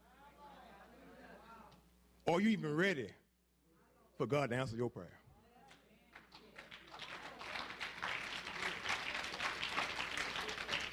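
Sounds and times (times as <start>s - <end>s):
speech: 2.3s - 3.2s, 4.2s - 5.2s
faint audience claps: 5.7s - 10.9s.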